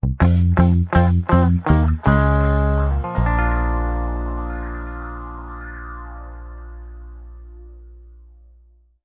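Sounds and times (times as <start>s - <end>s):
ska music: 0.2s - 7.9s
musical sting: 2.1s - 8.5s.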